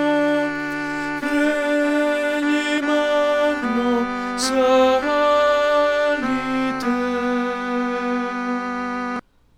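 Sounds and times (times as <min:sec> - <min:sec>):
tenors singing sacred music: 0:00.0 - 0:09.2.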